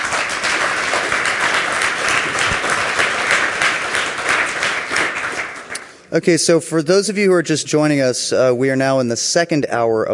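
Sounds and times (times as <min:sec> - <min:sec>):
audience applause: 0:00.0 - 0:05.9
speech: 0:06.1 - 0:10.1.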